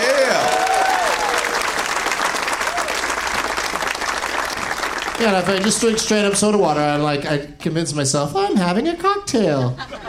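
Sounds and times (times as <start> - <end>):
whoops and cheers: 0.0 - 1.8, 2.6 - 3.1
crowd applause: 0.0 - 7.0
speech: 5.2 - 10.0
laughter: 9.4 - 10.0.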